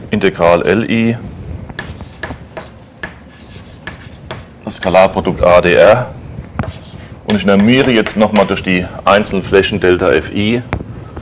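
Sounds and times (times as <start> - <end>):
speech: 0.1 - 1.9, 4.7 - 6.2, 7.3 - 10.8
sum and integral being written by hand: 1.8 - 4.5, 6.6 - 8.4.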